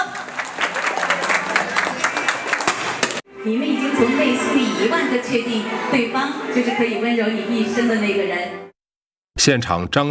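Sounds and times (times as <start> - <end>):
wedding guests applauding at a village wedding: 0.0 - 3.2
speech: 3.4 - 8.6, 9.4 - 10.0.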